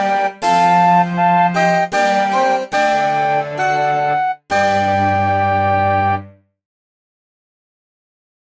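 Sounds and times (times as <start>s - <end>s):
medieval music: 0.0s - 6.4s.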